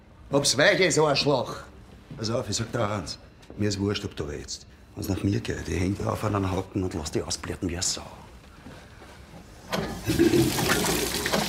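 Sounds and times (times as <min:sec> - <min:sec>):
speech: 0:00.3 - 0:08.3, 0:09.7 - 0:11.0
running water: 0:10.0 - 0:11.4.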